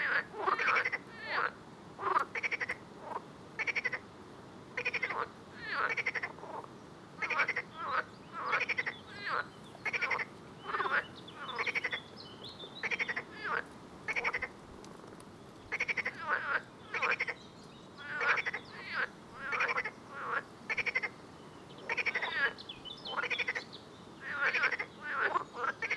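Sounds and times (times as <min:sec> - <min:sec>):
frogs croaking: 0:00.0 - 0:04.1, 0:04.8 - 0:14.6, 0:15.7 - 0:25.9.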